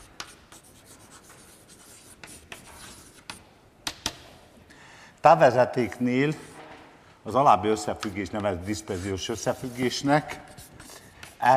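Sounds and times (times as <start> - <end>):
someone writing an equation on a board during a lecture: 0.0 - 3.4, 8.0 - 11.5
speech: 5.2 - 6.5, 7.2 - 10.5, 11.4 - 11.5.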